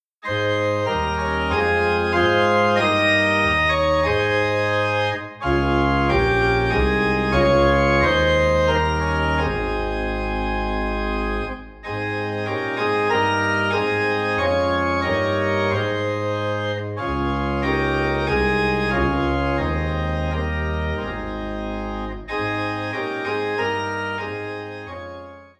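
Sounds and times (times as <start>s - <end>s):
organ in A flat: 0.2s - 25.5s.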